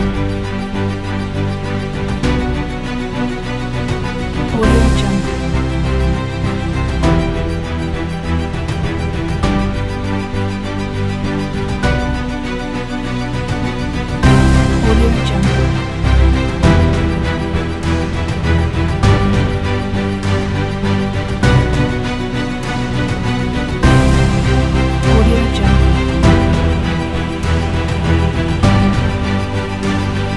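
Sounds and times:
epic emotional inspirational music: 0:00.0 - 0:30.3.

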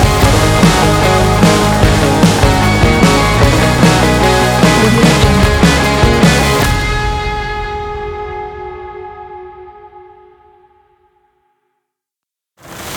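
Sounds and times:
indie pop rock music: 0:00.0 - 0:10.0.

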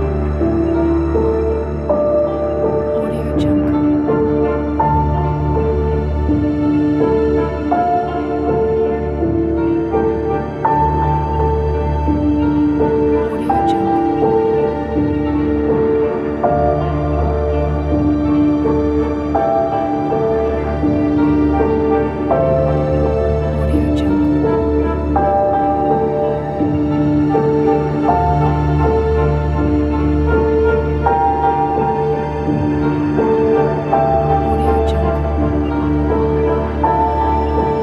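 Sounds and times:
dark tense suspense music: 0:00.0 - 0:37.8.

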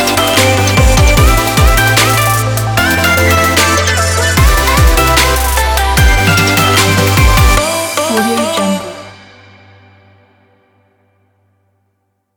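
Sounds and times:
future bass music: 0:00.0 - 0:09.6.

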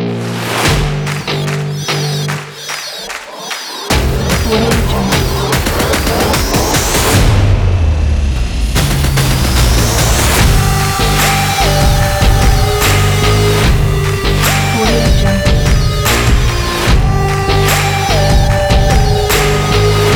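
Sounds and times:
epic sport action music: 0:00.1 - 0:20.1.

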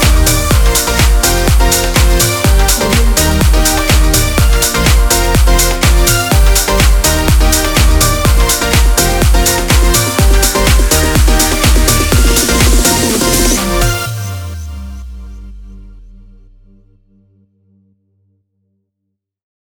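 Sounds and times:
summer fun pop music: 0:00.0 - 0:15.6.

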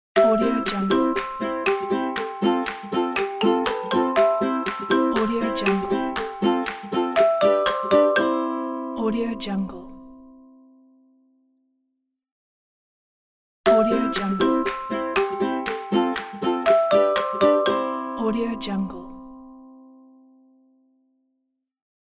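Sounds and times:
happy ukulele intro logo jingle: 0:00.2 - 0:09.0, 0:13.7 - 0:19.0.

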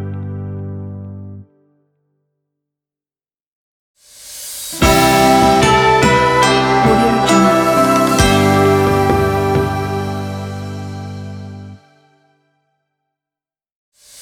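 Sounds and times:
Chinese smart sound logo: 0:04.8 - 0:11.8.

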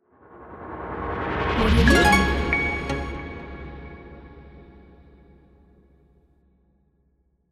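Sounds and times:
logo jingle: 0:01.6 - 0:04.6.

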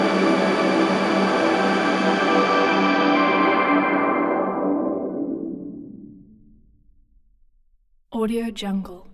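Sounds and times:
abstract soundscape: 0:00.0 - 0:06.8.

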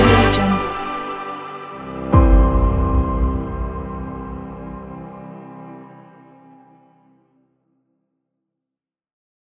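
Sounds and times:
motivational cinematic background music: 0:00.0 - 0:07.4.

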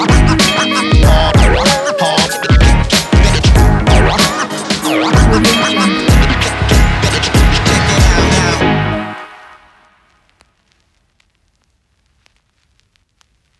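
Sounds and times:
positive hip hop music: 0:00.0 - 0:09.8.

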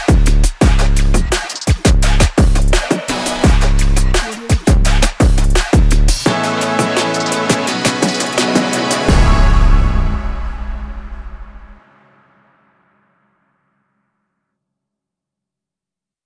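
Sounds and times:
epic high energy sports trap music: 0:00.0 - 0:11.9.

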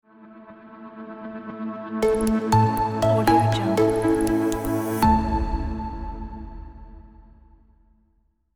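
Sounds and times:
corporate logo jingle: 0:02.0 - 0:06.7.

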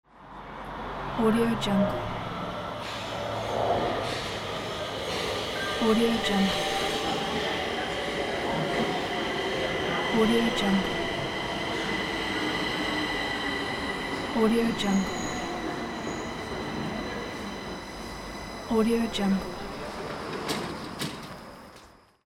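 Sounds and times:
city train arriving: 0:00.2 - 0:22.2.

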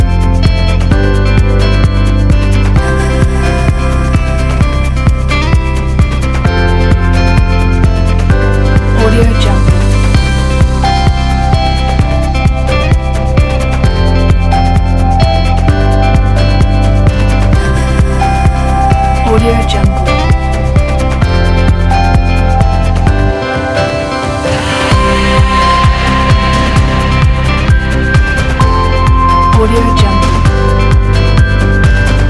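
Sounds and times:
upbeat corporate motivational pop music: 0:00.0 - 0:32.2.

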